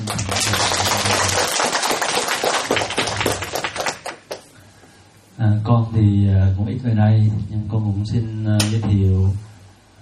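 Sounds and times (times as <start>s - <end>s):
audience applause: 0.0s - 4.5s
speech: 5.7s - 9.5s.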